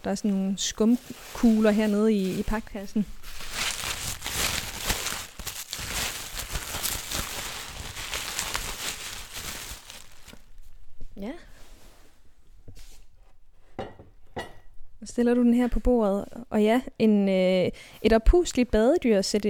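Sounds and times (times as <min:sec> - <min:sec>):
speech: 0:00.0 - 0:03.5, 0:15.2 - 0:19.4
bubble wrap crinkling as a glass sculpture is unpacked: 0:00.0 - 0:11.4.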